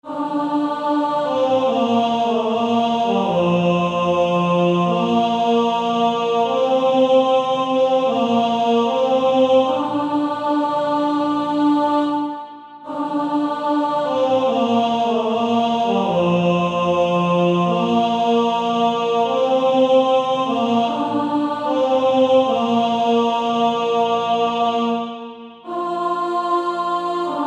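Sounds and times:
male choir singing: 0.0 - 27.4.

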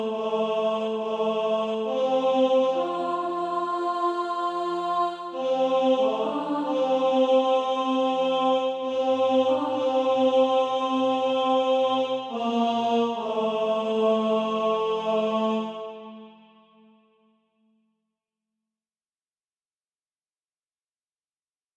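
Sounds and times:
tenor SATB practice part: 0.0 - 16.2.

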